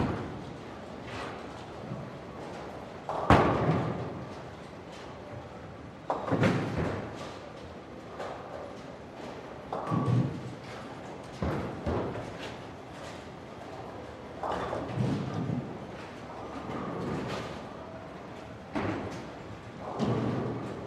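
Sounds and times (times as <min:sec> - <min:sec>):
bowling alley light activity: 0:00.0 - 0:20.8.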